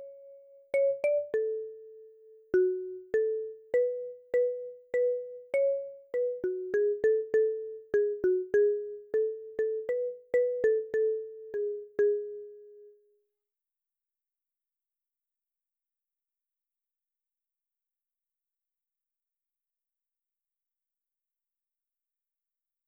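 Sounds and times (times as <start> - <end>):
marimba: 0.0 - 13.0.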